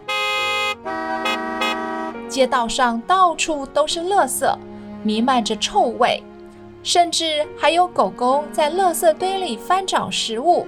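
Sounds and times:
car horns honking in city traffic: 0.0 - 2.3
speech: 2.3 - 10.6.

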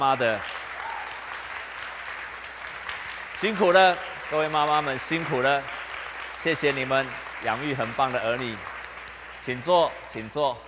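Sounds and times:
speech: 0.0 - 0.6, 3.4 - 5.8, 6.4 - 8.7, 9.5 - 10.6
audience applause: 0.0 - 10.6.

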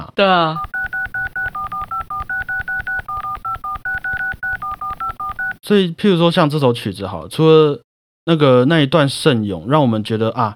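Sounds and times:
speech: 0.2 - 0.7, 5.7 - 10.5
mobile phone ringtone of keypad-style beeps: 0.6 - 5.6.

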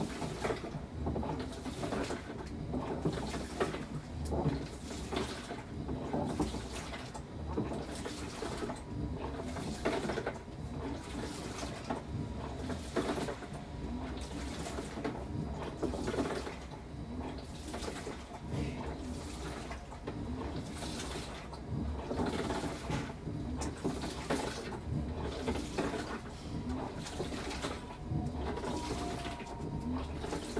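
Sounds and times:
washing machine churning with sloshing water: 0.0 - 30.5
faint thin tone: 28.1 - 30.5.

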